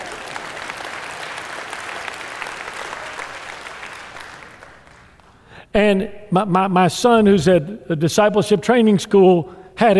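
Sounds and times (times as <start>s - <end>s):
room full of people clapping: 0.0s - 5.5s
speech: 5.8s - 9.9s.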